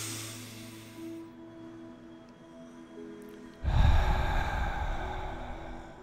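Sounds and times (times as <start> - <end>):
slow deep exaggerated breath as a calming exercise: 0.0 - 1.7, 3.6 - 6.0.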